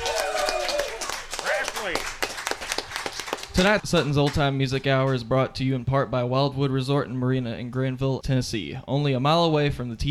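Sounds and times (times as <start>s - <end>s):
audience applause: 0.0s - 4.4s
speech: 3.6s - 10.0s.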